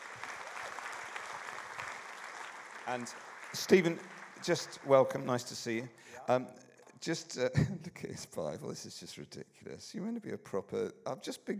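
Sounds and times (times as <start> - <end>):
audience applause welcoming a guest onto the stage: 0.0 - 6.0
speech: 2.9 - 11.5.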